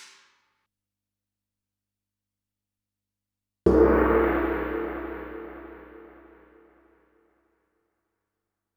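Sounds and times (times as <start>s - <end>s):
Yamaha DD-65 cymbal: 3.7s - 6.6s.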